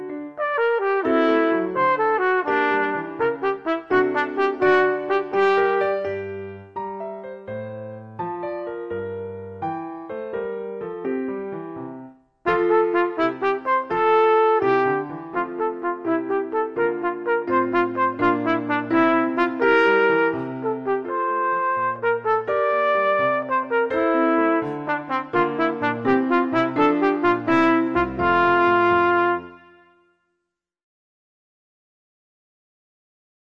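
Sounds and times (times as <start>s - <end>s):
instrumental accompaniment: 0.0s - 30.1s
trumpet: 0.3s - 6.6s, 12.5s - 30.3s.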